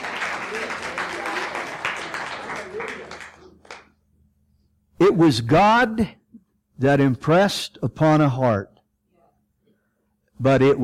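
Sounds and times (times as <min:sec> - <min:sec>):
audience hand clapping: 0:00.0 - 0:04.0
speech: 0:05.1 - 0:06.2, 0:06.8 - 0:08.7, 0:10.4 - 0:10.8.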